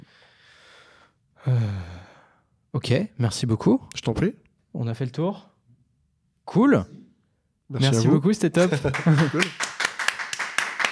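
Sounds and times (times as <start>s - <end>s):
speech: 1.4s - 1.9s, 2.8s - 5.5s, 6.5s - 7.0s, 7.7s - 9.7s
audience applause: 8.7s - 10.9s.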